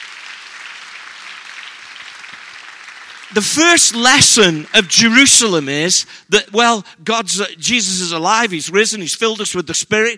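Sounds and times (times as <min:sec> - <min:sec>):
audience clapping: 0:00.0 - 0:05.9
speech: 0:03.3 - 0:10.1.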